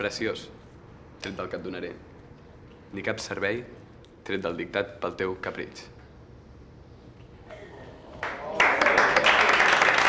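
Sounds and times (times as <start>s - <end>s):
speech: 0.0s - 2.1s, 2.9s - 6.0s
small group applauding: 8.1s - 10.0s.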